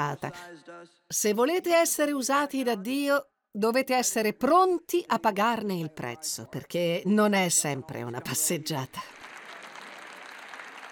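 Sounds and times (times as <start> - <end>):
speech: 0.0 - 9.2
audience applause: 9.1 - 10.8.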